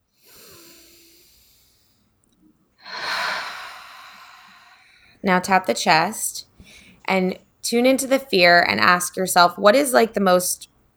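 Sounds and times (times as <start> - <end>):
deep breath during a guided self-acceptance tapping exercise: 0.2 - 2.2, 2.8 - 5.2, 6.6 - 7.1
speech: 5.2 - 6.5, 7.1 - 10.7.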